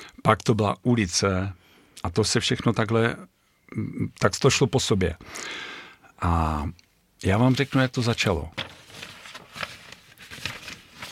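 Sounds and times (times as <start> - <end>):
hiss: 0.0 - 11.0
speech: 0.2 - 8.8
paper rustling: 7.3 - 11.0.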